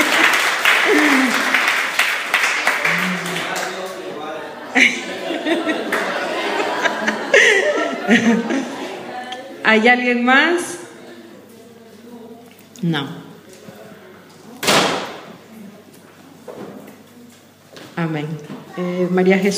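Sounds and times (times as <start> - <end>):
audience applause during a church service welcoming a congregant: 0.0 - 9.1
congregation chuckling and laughing: 0.0 - 9.6
speech: 8.1 - 8.6, 9.7 - 10.8, 12.8 - 13.2, 18.0 - 19.5.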